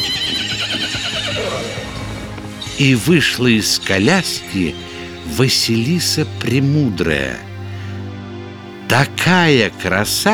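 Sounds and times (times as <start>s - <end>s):
horses of a golden six-horse carriage neighing: 0.0s - 5.4s
speech: 2.8s - 7.5s, 8.9s - 10.3s.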